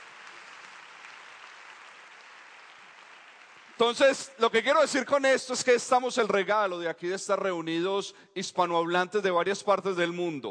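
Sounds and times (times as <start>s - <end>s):
audience applause: 0.0s - 4.3s
speech: 3.8s - 10.4s.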